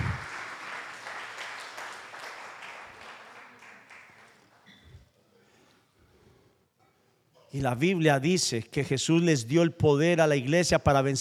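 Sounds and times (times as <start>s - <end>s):
audience applause: 0.0s - 4.7s
speech: 7.5s - 11.1s.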